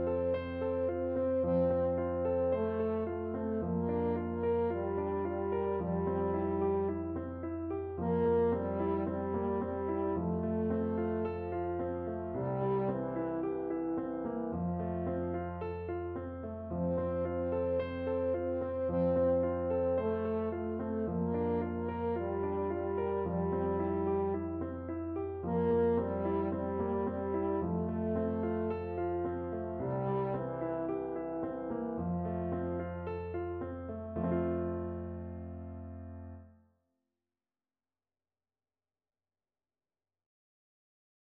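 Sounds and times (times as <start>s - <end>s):
lullaby on French horn: 0.0s - 16.0s, 16.7s - 35.2s.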